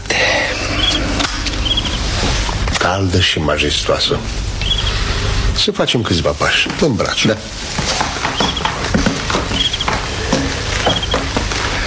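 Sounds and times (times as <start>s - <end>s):
rustling noise: 0.0s - 11.8s
crickets chirping on a summer night: 0.3s - 2.4s, 4.2s - 5.4s, 8.1s - 11.8s
speech: 2.9s - 4.5s, 5.6s - 8.0s.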